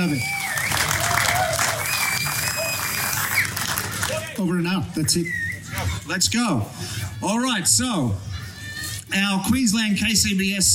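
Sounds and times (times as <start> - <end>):
speech: 0.0 - 0.4, 4.4 - 5.5, 6.1 - 8.4, 9.1 - 10.7
audience round of applause: 0.0 - 4.4.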